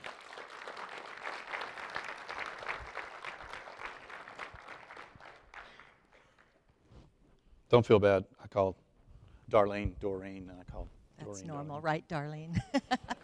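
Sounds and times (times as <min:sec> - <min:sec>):
audience applause welcoming a guest: 0:00.0 - 0:06.6
speech: 0:07.7 - 0:08.8, 0:09.5 - 0:13.0.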